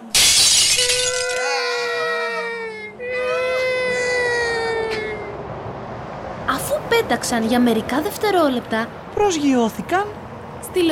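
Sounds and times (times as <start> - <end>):
glass window shattering: 0.1 - 1.8
long wavering high-pitched wail: 0.2 - 5.5
speech: 7.0 - 10.8.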